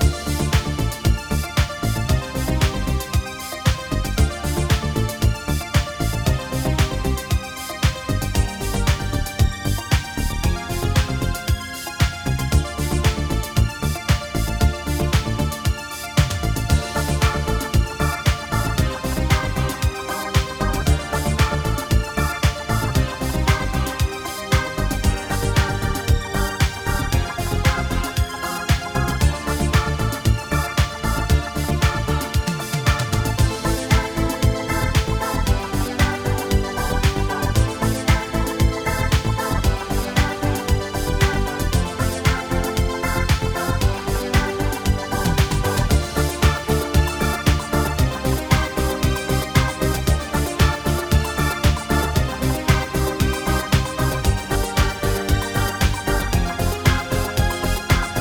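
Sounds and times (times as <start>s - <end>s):
funny novelty music: 0.0s - 58.1s.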